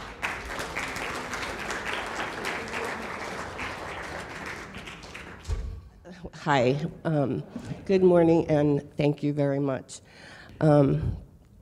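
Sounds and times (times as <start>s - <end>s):
audience applause welcoming a guest speaker to the stage: 0.0s - 5.5s
speech: 6.4s - 11.2s.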